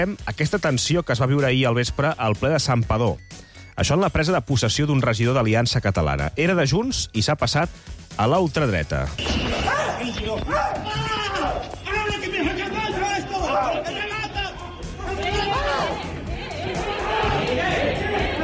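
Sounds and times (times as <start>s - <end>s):
speech: 0.0s - 11.0s
antifascist protest crowd shouting and yelling: 9.4s - 18.4s.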